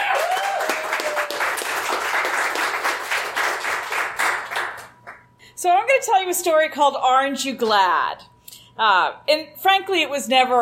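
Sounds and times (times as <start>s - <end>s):
audience applause welcoming a Sit, Stay, Read volunteer: 0.0s - 5.2s
speech: 6.0s - 10.6s.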